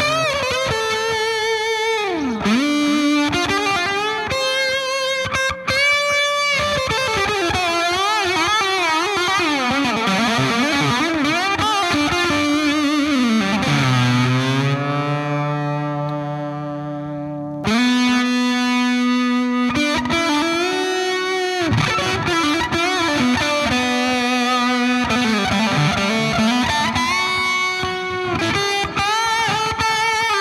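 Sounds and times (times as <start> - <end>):
Sunface fuzz pedal guitar: 0.0 - 30.3.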